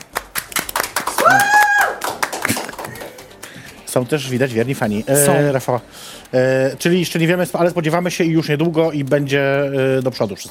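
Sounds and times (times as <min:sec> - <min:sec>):
applause: 0:00.0 - 0:04.0
whooping cheer: 0:01.1 - 0:02.2
speech: 0:03.9 - 0:10.5.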